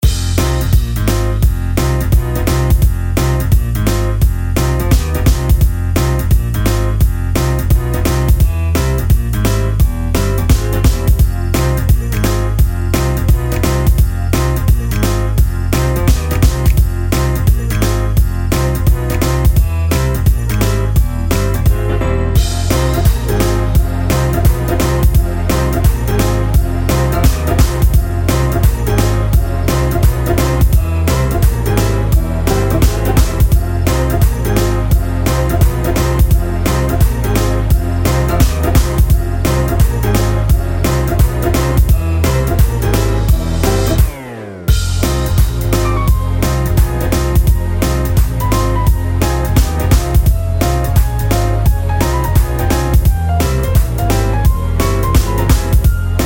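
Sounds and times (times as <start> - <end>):
upbeat pause theme music: 0.0 - 56.2.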